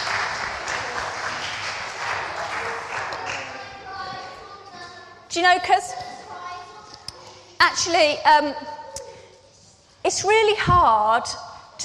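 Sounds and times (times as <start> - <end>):
audience applause: 0.0 - 3.9
speech: 5.4 - 6.0, 7.6 - 8.7, 10.0 - 11.8.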